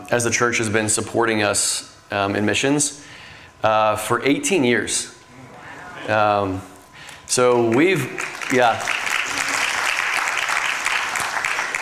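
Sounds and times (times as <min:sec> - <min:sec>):
speech: 0:00.1 - 0:05.2, 0:06.0 - 0:06.7, 0:07.3 - 0:09.0
crowd applause: 0:07.5 - 0:11.8.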